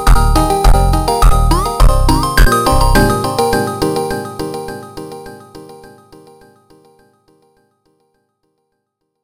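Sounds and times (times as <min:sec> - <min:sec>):
slowed funk instrumental: 0:00.0 - 0:04.7.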